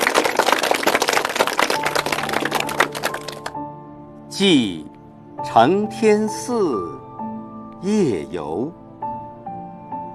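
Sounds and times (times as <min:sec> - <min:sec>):
audience clapping in welcome: 0:00.0 - 0:03.6
speech: 0:04.4 - 0:07.1, 0:07.8 - 0:08.8.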